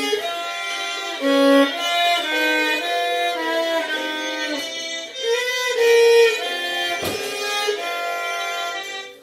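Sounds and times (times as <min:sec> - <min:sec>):
happy violin tune: 0:00.0 - 0:09.2.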